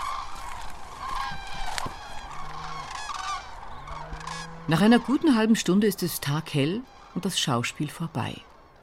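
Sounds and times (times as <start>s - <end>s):
common cranes trumpeting in flight: 0.0s - 8.8s
speech: 4.7s - 8.5s.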